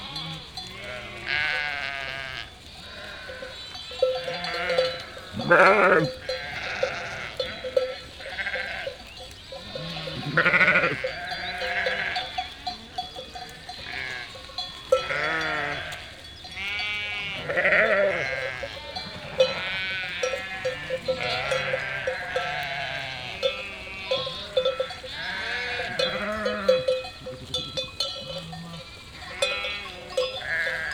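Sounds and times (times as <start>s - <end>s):
sheep flock bleating: 0.0s - 30.9s
small bells clinking: 0.0s - 30.9s.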